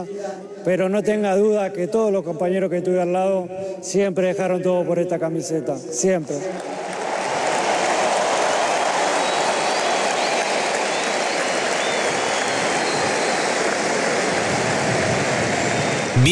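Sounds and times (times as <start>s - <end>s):
speech: 0.0s - 7.0s
large crowd applause: 6.2s - 16.2s.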